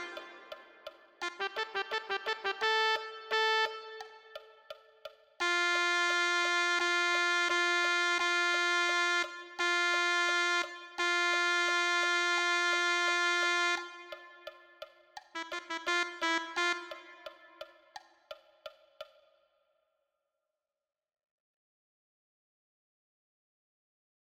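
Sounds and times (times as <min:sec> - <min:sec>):
tenor saxophone: 0:00.0 - 0:04.8, 0:05.4 - 0:18.0.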